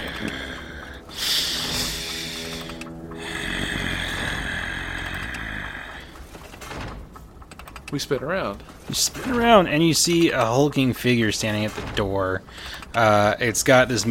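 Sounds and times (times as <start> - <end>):
voice imitating loud heavy breathing: 0.0 - 6.2
speech: 7.9 - 14.0.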